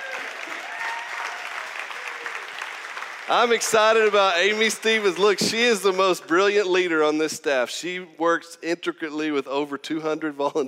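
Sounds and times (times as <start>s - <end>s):
audience applause: 0.0s - 5.5s
speech: 3.3s - 10.6s.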